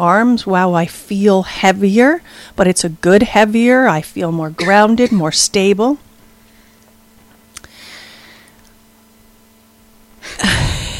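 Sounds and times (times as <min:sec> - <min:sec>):
speech: 0:00.0 - 0:06.1
person coughing: 0:04.6 - 0:05.4, 0:10.3 - 0:10.9.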